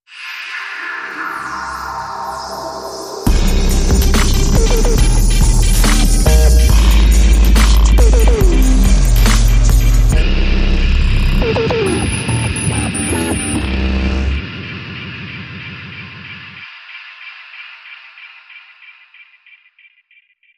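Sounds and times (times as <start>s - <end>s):
dubcore stinger: 3.2s - 16.6s.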